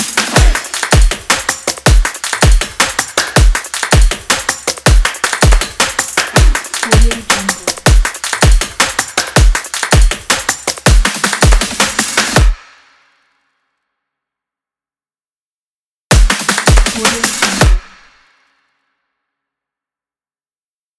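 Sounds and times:
drums: 0.0 - 12.5, 16.1 - 17.9.

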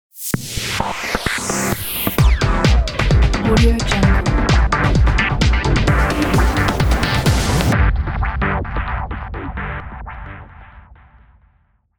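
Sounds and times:
3D logo sound: 0.2 - 9.0.

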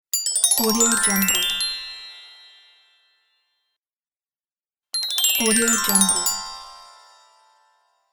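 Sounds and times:
Christmas song: 0.6 - 3.6, 5.2 - 8.1.

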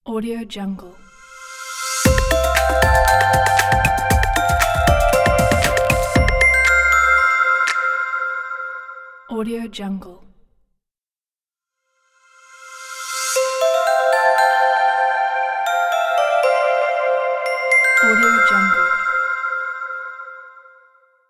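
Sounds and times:
crystal corporate logo ident: 1.3 - 8.9, 12.4 - 20.3.

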